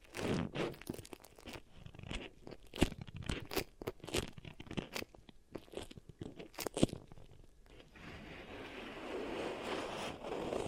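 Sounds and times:
beeswax pressed and worked, crackling: 0.0s - 10.6s
rubbing rustle of beeswax: 7.9s - 10.6s.

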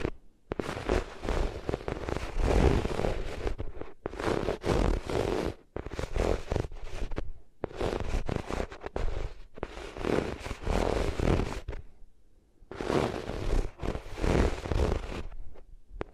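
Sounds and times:
ears rubbed against different materials: 0.0s - 11.8s, 12.7s - 16.1s.

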